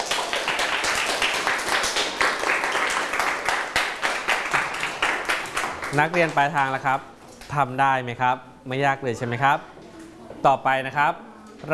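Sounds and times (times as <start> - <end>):
group applause: 0.0 - 6.4
speech: 5.9 - 9.7, 10.4 - 11.7.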